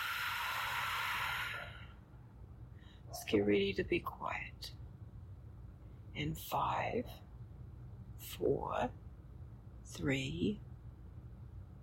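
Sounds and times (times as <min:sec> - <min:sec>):
deep breath drawn in and blown out: 0:00.0 - 0:02.1
speech: 0:03.3 - 0:04.8, 0:06.2 - 0:07.3, 0:08.2 - 0:09.0, 0:09.9 - 0:10.7.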